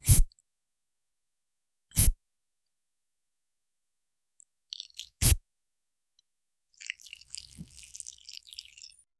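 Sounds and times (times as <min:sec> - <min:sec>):
soft wet sound: 0:04.7 - 0:05.4, 0:06.7 - 0:09.1.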